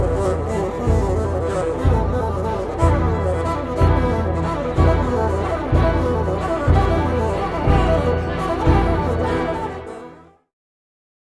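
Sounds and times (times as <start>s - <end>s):
bassoon concerto with orchestra: 0.0s - 10.4s.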